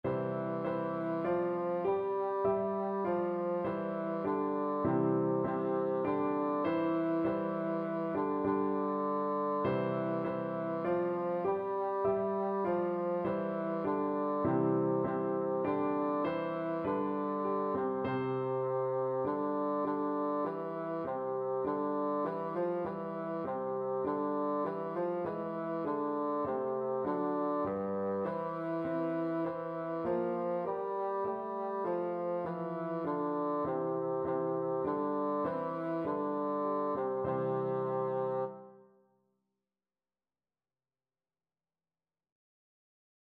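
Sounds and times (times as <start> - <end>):
bassoon melody: 0.0 - 38.8.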